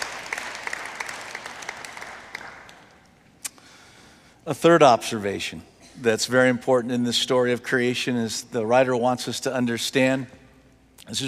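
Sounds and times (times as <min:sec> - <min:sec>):
audience applause: 0:00.0 - 0:03.0
speech: 0:04.5 - 0:10.4, 0:11.1 - 0:11.2.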